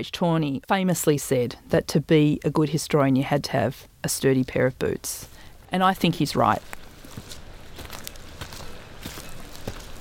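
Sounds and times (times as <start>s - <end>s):
speech: 0.0s - 6.8s
hiss: 0.4s - 10.0s
footsteps walking outdoors over long-trodden ground: 3.2s - 10.0s.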